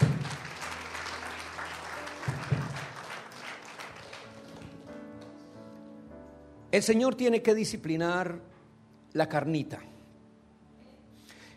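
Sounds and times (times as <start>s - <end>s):
audience applause: 0.0s - 5.4s
speech: 6.8s - 8.5s, 9.2s - 9.9s.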